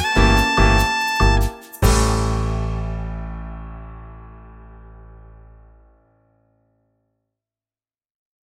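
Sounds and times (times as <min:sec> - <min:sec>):
calm jazz samba music: 0:00.0 - 0:03.8.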